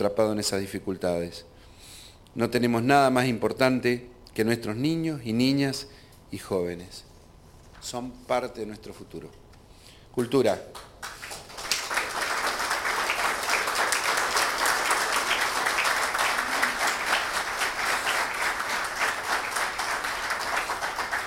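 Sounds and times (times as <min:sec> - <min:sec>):
speech: 0:00.0 - 0:01.5, 0:02.3 - 0:07.1, 0:07.8 - 0:09.4, 0:10.1 - 0:10.9
audience applause: 0:11.0 - 0:21.2.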